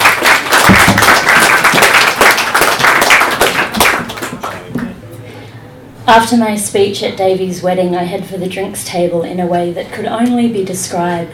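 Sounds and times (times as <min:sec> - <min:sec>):
audience applauding: 0:00.0 - 0:04.9
speech: 0:06.1 - 0:11.3.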